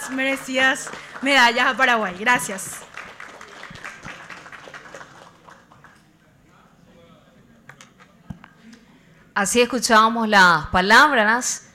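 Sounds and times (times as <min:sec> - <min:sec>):
crowd applauding: 0:00.0 - 0:06.0
speech: 0:00.1 - 0:02.9, 0:09.4 - 0:11.6.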